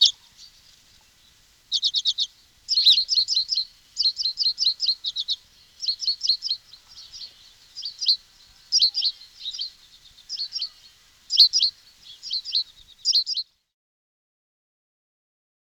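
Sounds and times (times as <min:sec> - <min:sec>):
bird singing loud high buzzy trilled phrases: 0:00.0 - 0:13.4.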